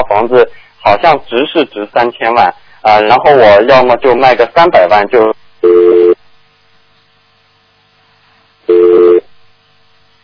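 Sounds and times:
faint hum: 0:00.0 - 0:10.2
speech: 0:00.1 - 0:05.4
internet phone line tone bursts: 0:05.6 - 0:06.2, 0:08.7 - 0:09.3.

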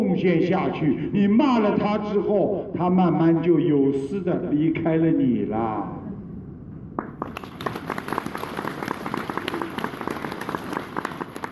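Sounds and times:
speech: 0:00.2 - 0:06.0
audience clapping: 0:07.0 - 0:11.5.

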